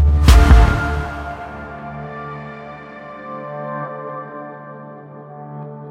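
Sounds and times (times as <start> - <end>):
stylish presentation opener music: 0.1 - 2.7.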